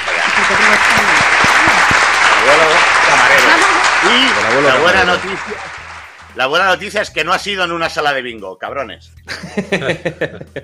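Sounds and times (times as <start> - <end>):
laughter: 0.0 - 5.8, 9.3 - 10.6
crowd applauding: 0.0 - 7.0
speech: 4.7 - 5.8, 6.4 - 10.6.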